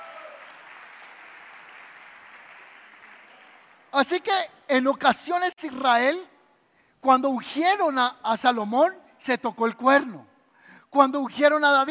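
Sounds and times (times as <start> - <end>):
audience applause: 0.0 - 3.9
speech: 3.9 - 6.3, 7.0 - 10.3, 10.9 - 11.8.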